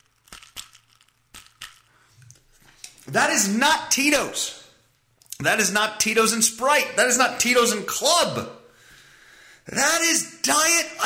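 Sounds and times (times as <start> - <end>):
ice cubes clinking: 0.0 - 1.9
speech: 3.1 - 4.6, 5.4 - 8.5, 9.6 - 11.0.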